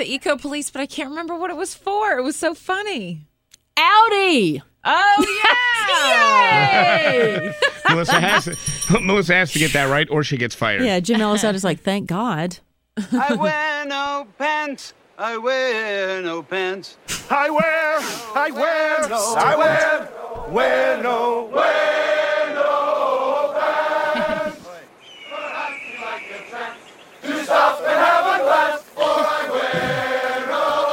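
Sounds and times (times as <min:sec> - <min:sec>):
speech: 0:00.0 - 0:21.9
laughter: 0:05.2 - 0:09.9, 0:13.0 - 0:13.6, 0:17.1 - 0:20.1, 0:23.9 - 0:24.8, 0:28.3 - 0:30.9
crowd chanting in a Dockers commercial: 0:05.8 - 0:08.5, 0:17.4 - 0:30.9.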